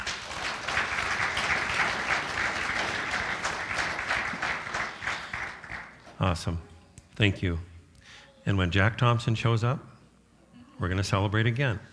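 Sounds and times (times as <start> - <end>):
audience applause welcoming new members: 0.0 - 6.0
speech: 6.2 - 7.7, 8.4 - 9.9, 10.8 - 11.9.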